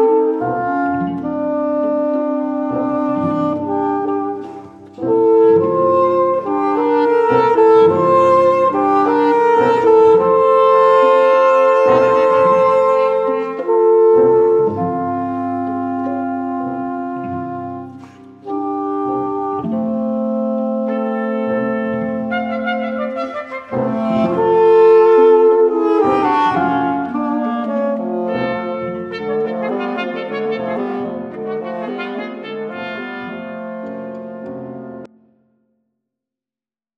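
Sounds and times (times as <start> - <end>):
bassoon in a trio: 0.0 - 35.2
trumpet in a trio: 0.0 - 35.2
clarinet in a trio: 0.0 - 35.3.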